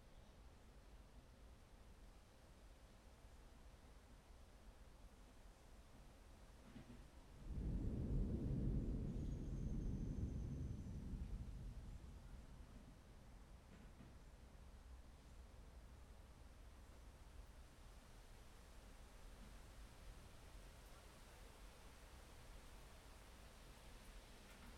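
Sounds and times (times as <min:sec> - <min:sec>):
thunderstorm: 0:06.6 - 0:14.5.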